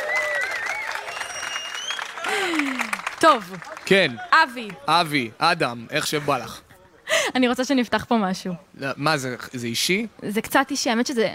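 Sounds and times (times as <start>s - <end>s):
audience applause: 0.0s - 5.2s
speech: 2.4s - 6.6s, 7.3s - 11.3s.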